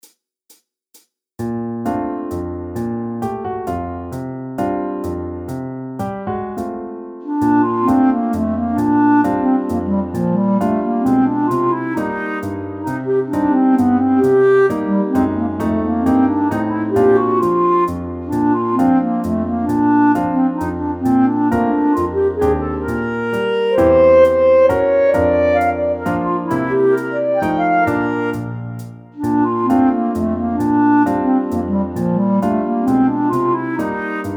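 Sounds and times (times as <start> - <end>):
clarinet: 1.9 - 34.3.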